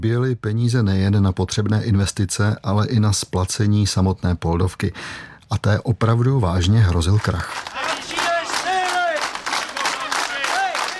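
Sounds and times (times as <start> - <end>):
speech: 0.0 - 7.8
protesting workers chanting at a rally in the courtyard of Poldi Kladno: 7.7 - 10.9.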